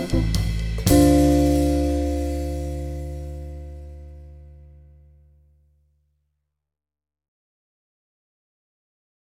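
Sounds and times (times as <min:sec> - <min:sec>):
bossa nova music: 0:00.0 - 0:04.4.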